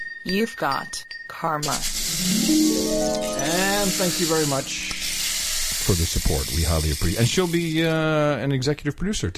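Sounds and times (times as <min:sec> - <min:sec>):
speech: 0:00.3 - 0:04.9, 0:05.9 - 0:09.3
rain stick being shaken: 0:01.7 - 0:08.0.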